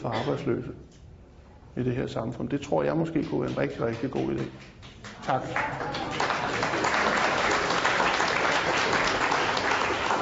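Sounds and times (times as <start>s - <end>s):
speech: 0.0s - 1.0s, 1.8s - 6.8s
clapping: 3.2s - 10.2s.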